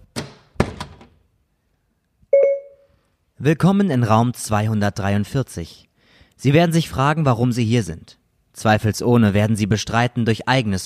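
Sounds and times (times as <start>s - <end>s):
door being closed: 0.0s - 1.2s
speech: 3.4s - 10.8s.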